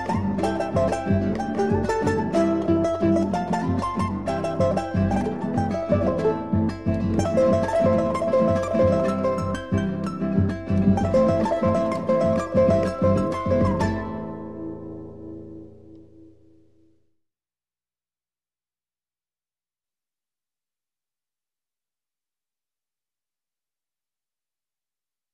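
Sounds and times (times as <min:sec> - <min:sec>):
bailecito on flute, guitar and Andean harp: 0:00.0 - 0:15.3.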